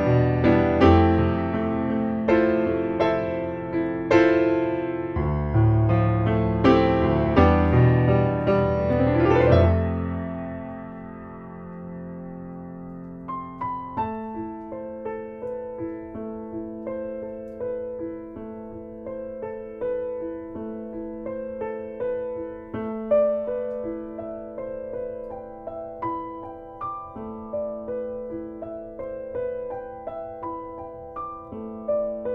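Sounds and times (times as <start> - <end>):
piano solo: 0.0 - 32.3.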